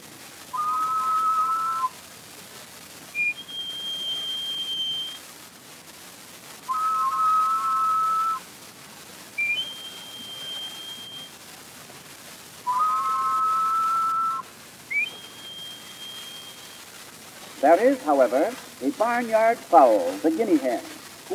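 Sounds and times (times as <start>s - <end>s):
solitaire thrush song with two simultaneous notes: 0.5s - 2.0s, 3.1s - 5.2s, 6.7s - 8.4s, 9.4s - 11.3s, 12.6s - 21.3s
speech: 17.6s - 21.3s.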